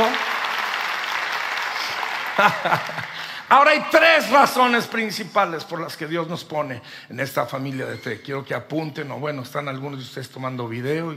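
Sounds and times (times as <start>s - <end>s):
audience applause: 0.0s - 3.8s
laughter: 2.2s - 3.4s
speech: 2.4s - 11.1s.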